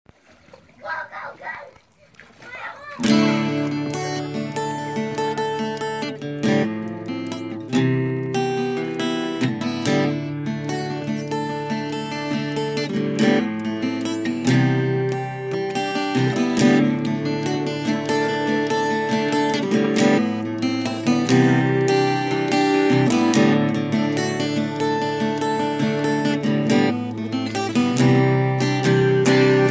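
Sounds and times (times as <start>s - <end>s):
acoustic music: 0.2s - 29.6s.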